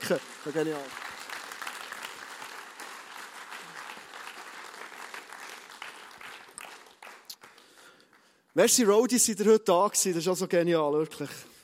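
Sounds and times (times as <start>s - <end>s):
audience applause: 0.0s - 8.4s
speech: 0.1s - 1.0s, 8.6s - 11.5s.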